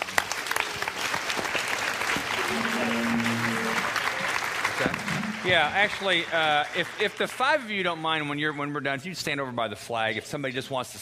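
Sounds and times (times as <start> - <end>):
audience clapping: 0.0 - 8.5
speech: 4.8 - 11.0.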